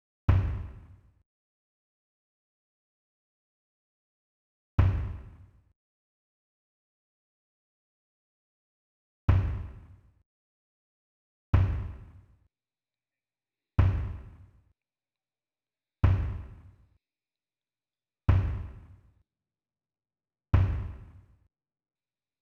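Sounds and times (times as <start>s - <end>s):
kick drum: 0.3s - 0.9s, 4.8s - 5.4s, 9.3s - 9.9s, 11.6s - 12.3s, 13.8s - 14.5s, 16.0s - 16.8s, 18.3s - 19.0s, 20.6s - 21.3s.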